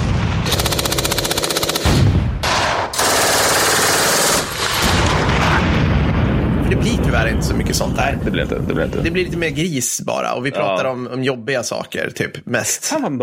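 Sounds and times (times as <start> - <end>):
machine gun fire: 0.0 - 5.8
grenade explosions: 0.0 - 9.6
speech: 7.7 - 13.2.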